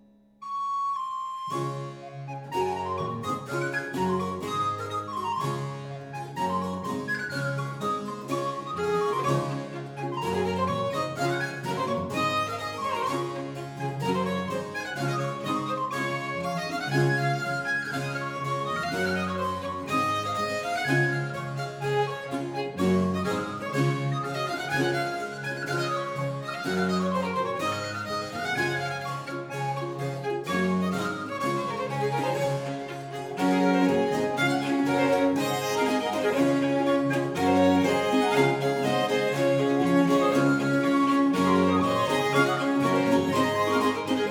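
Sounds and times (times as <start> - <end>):
traditional English country dance music: 1.4 - 44.2.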